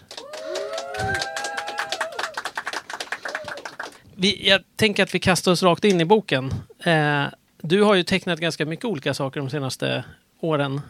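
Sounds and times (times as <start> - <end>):
small audience applause: 0.0 - 4.1
speech: 4.2 - 10.8.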